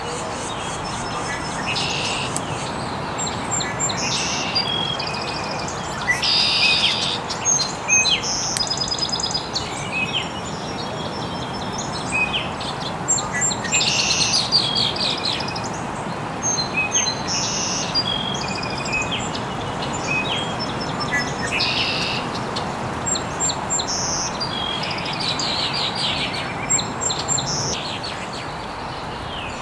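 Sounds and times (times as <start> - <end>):
birds chirping: 0.0 - 29.5.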